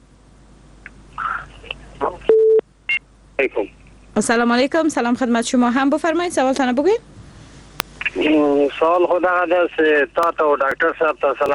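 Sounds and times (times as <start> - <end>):
telephone busy tone after a caller's line is cut off: 2.3 - 2.6
speech: 3.4 - 7.1, 8.2 - 11.5.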